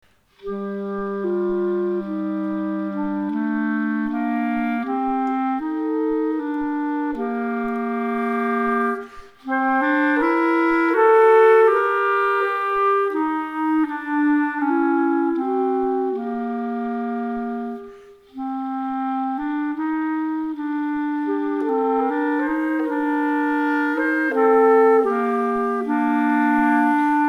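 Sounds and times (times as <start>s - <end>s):
musical duet: 0.1s - 27.2s.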